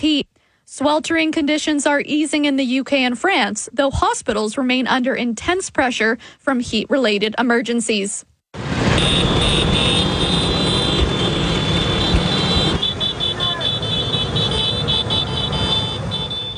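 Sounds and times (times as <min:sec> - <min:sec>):
speech: 0:00.0 - 0:09.7
Vespa scooters riding through city streets: 0:08.7 - 0:16.5
indistinct voices: 0:13.2 - 0:14.0.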